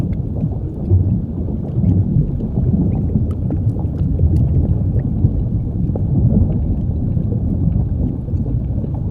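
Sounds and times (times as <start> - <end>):
volcanic lava lake ambience: 0.0 - 9.1.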